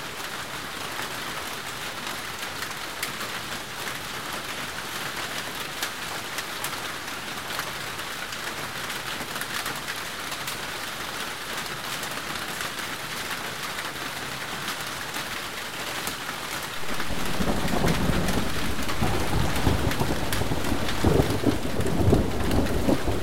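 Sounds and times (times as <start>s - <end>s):
rain: 0.0s - 23.2s
thunder: 16.8s - 23.2s.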